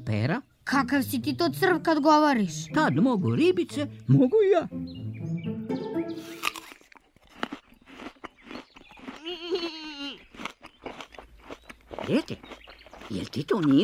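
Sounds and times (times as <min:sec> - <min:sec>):
speech: 0:00.1 - 0:05.3, 0:12.1 - 0:13.8
crunching bites of an apple: 0:06.2 - 0:13.8.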